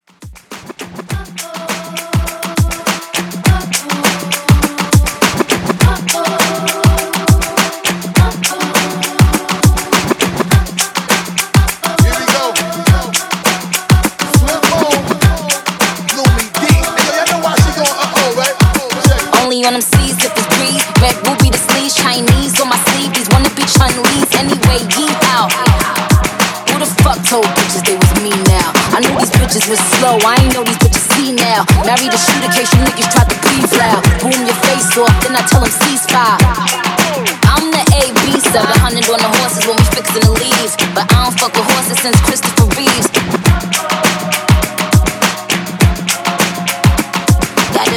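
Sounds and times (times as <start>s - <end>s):
Top 40 pop mashup at 102 BPM: 0.5s - 47.9s.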